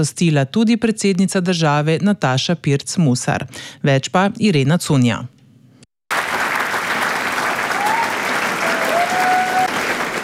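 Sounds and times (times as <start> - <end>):
speech: 0.0 - 5.4
standing ovation from a theatre audience in the Kosovel hall in Sežana: 6.1 - 10.2.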